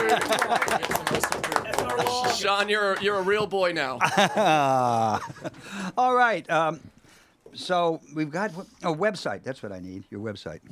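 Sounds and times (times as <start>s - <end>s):
laughter: 0.0s - 2.6s, 3.2s - 5.9s
applause: 0.0s - 3.4s
speech: 0.1s - 6.9s, 7.5s - 10.7s.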